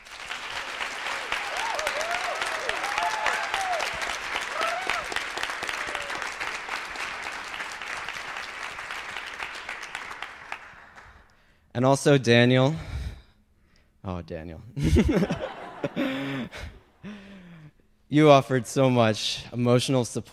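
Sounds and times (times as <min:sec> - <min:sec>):
audience applause: 0:00.0 - 0:11.2
speech: 0:11.8 - 0:12.9, 0:14.1 - 0:16.8, 0:18.1 - 0:20.3
laughter: 0:14.8 - 0:17.0.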